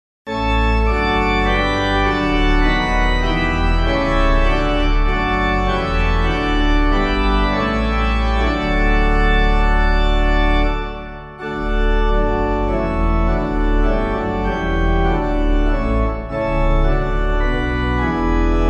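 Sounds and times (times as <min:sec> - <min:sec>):
organ playing a hymn: 0:00.3 - 0:18.6.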